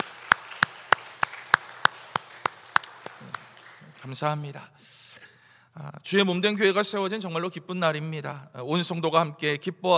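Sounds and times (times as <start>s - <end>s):
audience applauding: 0.0s - 4.2s
speech: 4.0s - 5.0s, 5.8s - 9.9s.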